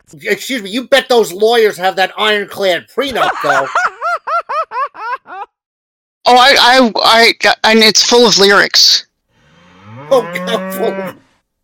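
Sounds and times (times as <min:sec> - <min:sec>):
speech: 0:00.1 - 0:03.9, 0:06.3 - 0:09.1, 0:10.1 - 0:11.2
laughter: 0:03.0 - 0:05.6
cow mooing: 0:09.3 - 0:11.3.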